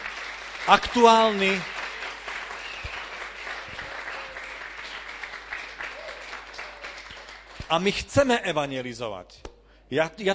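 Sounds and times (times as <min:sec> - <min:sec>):
crowd clapping: 0:00.0 - 0:08.1
speech: 0:00.7 - 0:01.7, 0:07.7 - 0:10.3.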